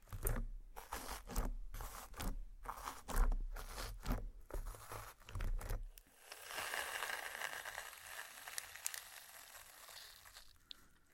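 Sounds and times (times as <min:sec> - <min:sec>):
slime squeezed and pressed: 0:00.0 - 0:11.1
fizzing crackle with tiny snaps: 0:06.1 - 0:10.8.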